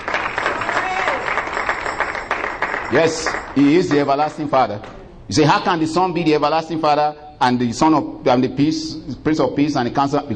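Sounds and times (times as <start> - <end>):
church congregation clapping in praise: 0.0 - 4.7
speech: 2.9 - 10.3.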